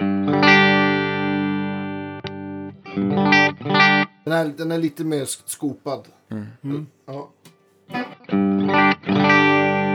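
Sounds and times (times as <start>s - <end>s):
electric guitar chords through effect in parallel mode: 0.0s - 4.2s, 8.0s - 9.9s
speech: 3.0s - 7.4s.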